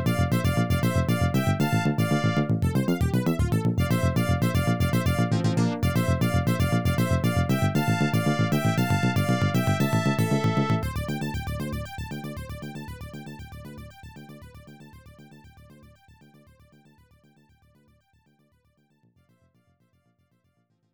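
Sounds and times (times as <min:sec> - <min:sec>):
unused background music: 0:00.0 - 0:14.7.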